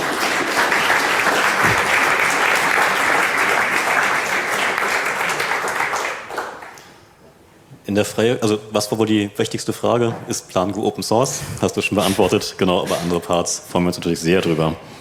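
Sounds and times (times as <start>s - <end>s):
audience applause: 0.0s - 7.0s
speech: 8.0s - 15.0s.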